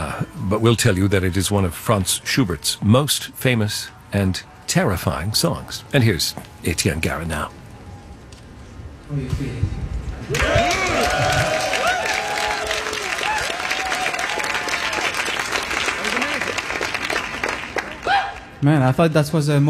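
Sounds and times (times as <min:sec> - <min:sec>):
speech: 0:00.5 - 0:07.6, 0:09.1 - 0:11.4, 0:18.6 - 0:19.6
concert audience applauding after a song performance: 0:10.3 - 0:18.6.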